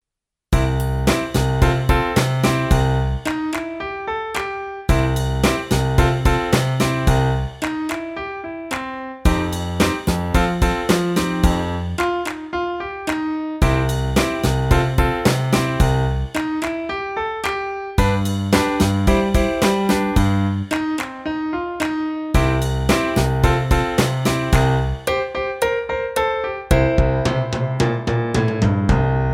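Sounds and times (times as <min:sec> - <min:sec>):
blues music: 0:00.6 - 0:29.3.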